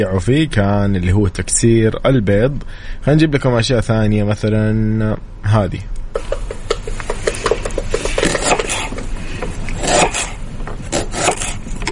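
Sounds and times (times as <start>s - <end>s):
speech: 0.0s - 6.4s
chopping an onion: 7.1s - 9.0s, 9.8s - 11.8s.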